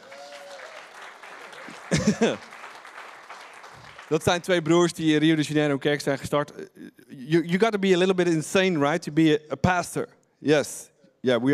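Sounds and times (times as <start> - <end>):
audience applause: 0.0 - 5.2
laughter: 1.5 - 2.6
speech: 2.0 - 2.5, 4.1 - 11.5.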